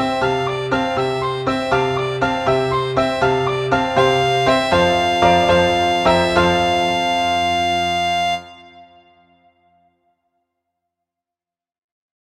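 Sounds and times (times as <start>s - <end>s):
gigue: 0.0s - 8.9s.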